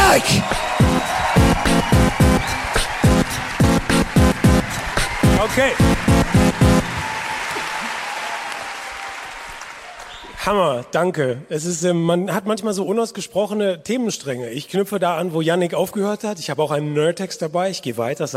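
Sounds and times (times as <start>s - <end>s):
audience clapping in steady rhythmic unison: 0.0s - 10.1s
speech: 0.2s - 1.1s, 5.4s - 6.0s, 10.4s - 18.3s.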